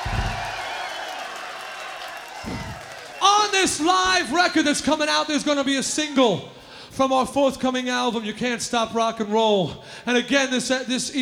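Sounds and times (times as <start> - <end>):
live club-show audience applauding: 0.0 - 3.6
crowd cheering: 0.0 - 6.4
speech: 3.6 - 11.2.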